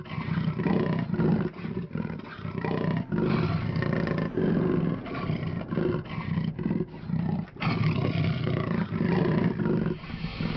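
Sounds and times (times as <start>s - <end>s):
jaguar rasping breaths: 0.0s - 10.5s.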